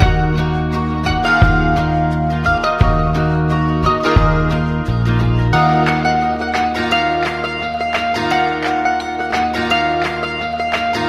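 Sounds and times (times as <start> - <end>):
jazz guitar loop: 0.0 - 11.0.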